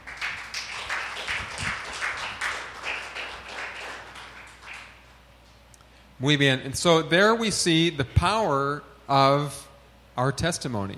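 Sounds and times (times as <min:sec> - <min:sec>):
audience applause: 0:00.0 - 0:05.0
speech: 0:06.2 - 0:10.9.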